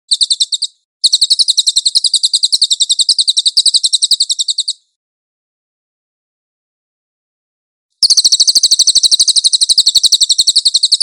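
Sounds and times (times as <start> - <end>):
cililin bird singing shrill trill: 0.1 - 5.0, 8.0 - 11.0.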